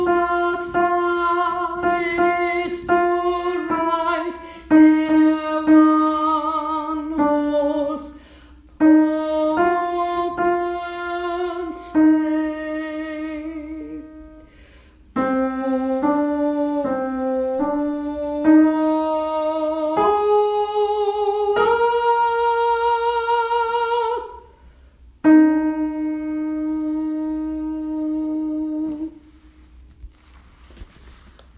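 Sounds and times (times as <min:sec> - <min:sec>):
lead melody of a Christmas song: 0:00.0 - 0:24.5, 0:25.2 - 0:29.6.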